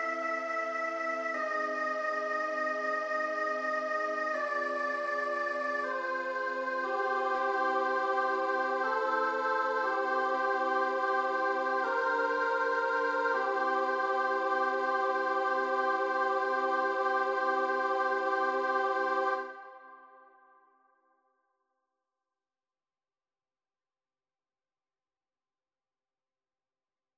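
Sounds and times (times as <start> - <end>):
children's choir singing a mass: 0.0 - 20.1.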